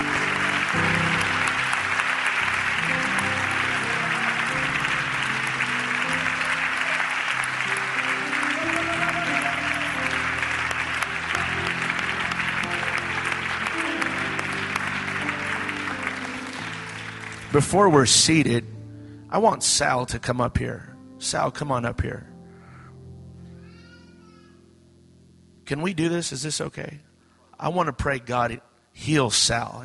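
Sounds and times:
audience applause and hand clapping: 0.0 - 18.0
speech: 17.6 - 18.7, 19.3 - 22.3, 25.7 - 29.8.

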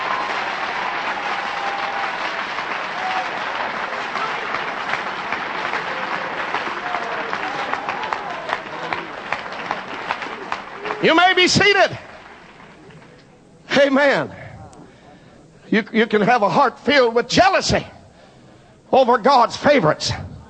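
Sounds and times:
audience clapping hands: 0.0 - 13.4
speech: 11.0 - 12.0, 13.8 - 14.4, 15.7 - 17.9, 18.9 - 20.2.

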